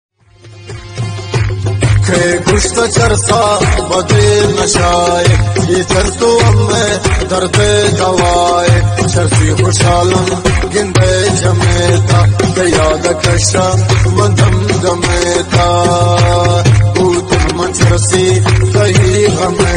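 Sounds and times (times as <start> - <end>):
Baloch remix music: 0.3 - 19.7.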